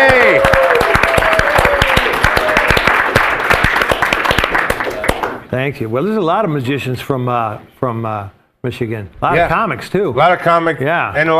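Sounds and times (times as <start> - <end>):
audience applause welcoming a comedian onstage: 0.0 - 5.4
speech: 5.5 - 11.3.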